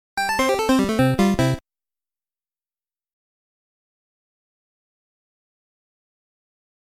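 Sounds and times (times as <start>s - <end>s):
game over jingle: 0.2s - 1.6s.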